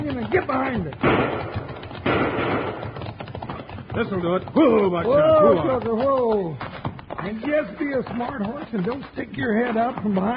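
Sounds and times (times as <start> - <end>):
low thumping: 0.0 - 6.3
speech: 0.3 - 2.2, 4.0 - 10.3
gunshot with rumbling tail: 1.0 - 3.0.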